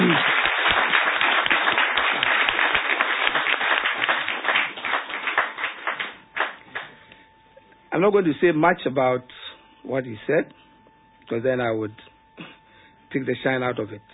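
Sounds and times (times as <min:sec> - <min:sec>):
audience applause: 0:00.0 - 0:07.0
speech: 0:08.0 - 0:10.6, 0:11.3 - 0:12.5, 0:13.1 - 0:14.1.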